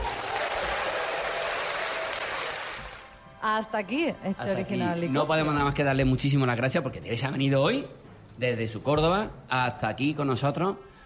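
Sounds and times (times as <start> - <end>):
applause: 0.0 - 3.2
speech: 3.4 - 10.9.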